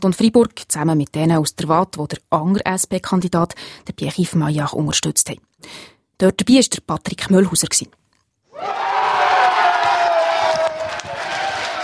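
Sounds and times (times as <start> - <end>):
speech: 0.0 - 8.0
crowd cheering in the Kulturzentrum Progger: 8.5 - 11.8.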